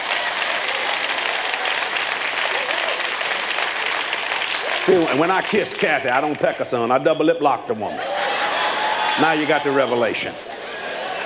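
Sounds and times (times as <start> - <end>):
audience applause: 0.0 - 7.0, 8.0 - 11.2
speech: 4.9 - 8.2, 9.2 - 10.5
laughter: 7.8 - 11.2.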